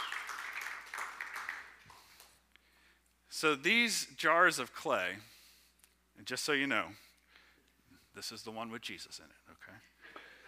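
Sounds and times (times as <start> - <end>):
round of applause from a crowd: 0.0 - 2.0
speech: 3.4 - 5.3, 6.2 - 7.1, 8.2 - 9.8.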